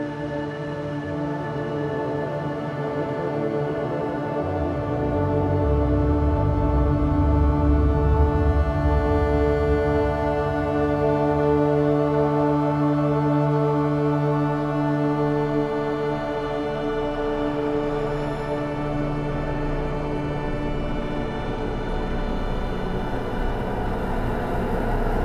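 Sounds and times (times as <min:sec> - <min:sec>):
sci-fi soundscape sound effects: 0:00.1 - 0:25.2.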